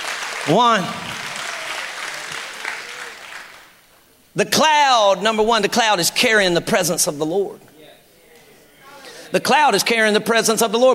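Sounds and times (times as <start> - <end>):
audience clapping hands: 0.0 - 4.0
speech: 0.4 - 1.1, 4.4 - 7.7, 9.3 - 10.9.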